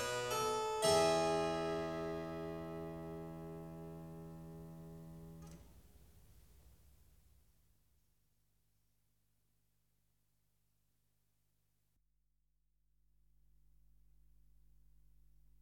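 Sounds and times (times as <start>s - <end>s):
clavier fugue in E major: 0.0s - 5.5s.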